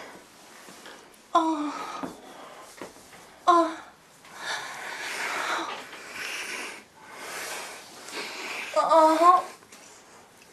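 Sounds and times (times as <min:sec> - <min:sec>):
person moaning: 0:01.4 - 0:02.1, 0:03.5 - 0:03.9, 0:08.7 - 0:09.5.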